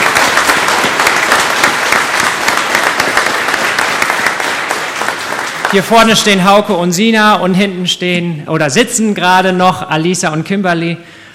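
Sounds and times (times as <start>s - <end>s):
audience applause: 0.0s - 6.4s
speech: 5.7s - 11.2s.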